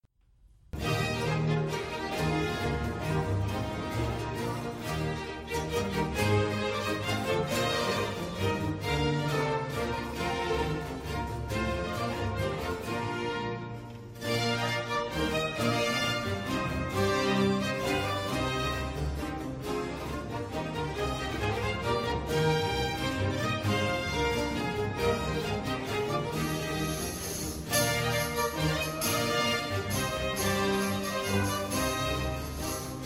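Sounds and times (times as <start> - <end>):
hornpipe tune: 0.8 - 33.0.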